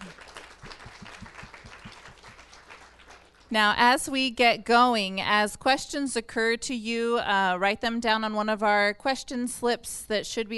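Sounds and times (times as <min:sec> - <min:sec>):
audience applauding to welcome a panel: 0:00.0 - 0:03.5
speech: 0:03.5 - 0:10.5.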